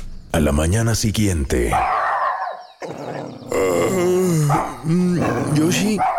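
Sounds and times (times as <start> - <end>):
speech: 0.4 - 2.0, 3.6 - 6.1
small dog growling: 2.8 - 5.7.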